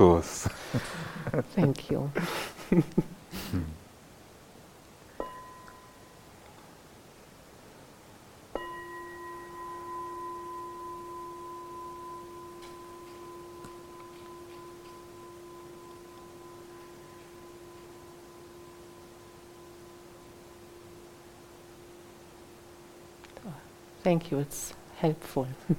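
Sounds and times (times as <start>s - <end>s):
speech: 0.0s - 0.9s, 1.6s - 3.6s, 24.1s - 25.7s
bell ringing: 5.2s - 6.2s, 8.6s - 21.0s.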